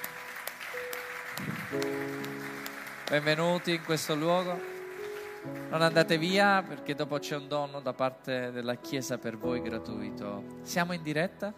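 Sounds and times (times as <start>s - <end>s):
audience applause: 0.0s - 6.4s
speech: 0.8s - 2.1s, 3.1s - 4.7s, 5.4s - 11.5s.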